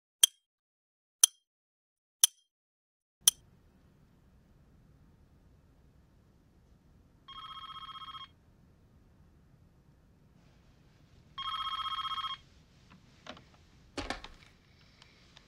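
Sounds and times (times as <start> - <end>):
telephone ringing beside the president's bed at the White House: 7.3 - 8.4, 11.4 - 12.4
faint clicks and rustles: 12.4 - 15.4.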